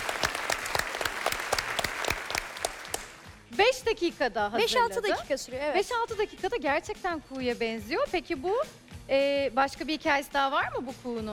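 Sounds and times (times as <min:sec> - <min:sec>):
applause: 0:00.0 - 0:03.5
speech: 0:03.6 - 0:11.3.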